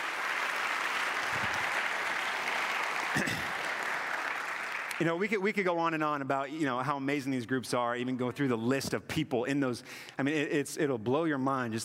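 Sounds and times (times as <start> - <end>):
audience applause for volunteers: 0.0 - 5.1
speech: 5.0 - 11.8.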